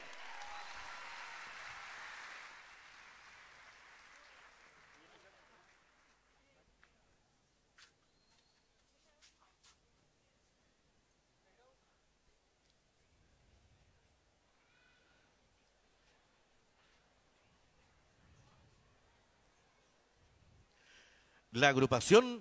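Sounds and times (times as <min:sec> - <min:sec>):
audience applause: 0:00.0 - 0:06.4
speech: 0:21.5 - 0:22.3.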